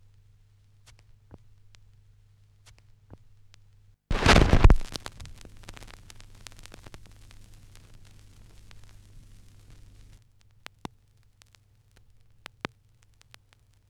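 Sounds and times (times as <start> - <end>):
vinyl record crackle mix: 4.1 - 13.8.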